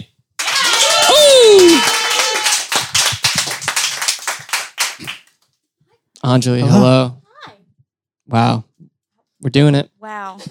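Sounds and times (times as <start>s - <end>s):
audience applause: 0.4s - 5.4s
speech: 6.3s - 7.2s, 8.3s - 8.7s, 9.4s - 10.5s.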